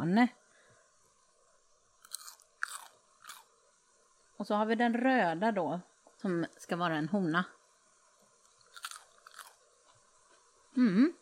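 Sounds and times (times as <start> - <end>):
speech: 0.0 - 0.4, 4.4 - 7.6, 10.8 - 11.1
person biting and chewing yellow bell pepper: 2.0 - 3.5, 8.4 - 9.6.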